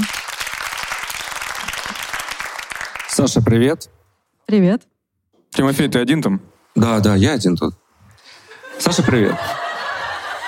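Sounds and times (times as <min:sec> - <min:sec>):
audience applause: 0:00.0 - 0:03.2
speech: 0:03.2 - 0:04.9, 0:05.6 - 0:07.8, 0:08.8 - 0:09.6
laughter: 0:08.4 - 0:10.4.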